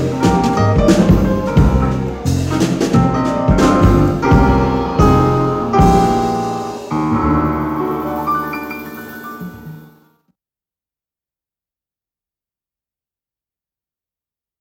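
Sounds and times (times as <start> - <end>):
jazz trio playing: 0.0 - 10.0.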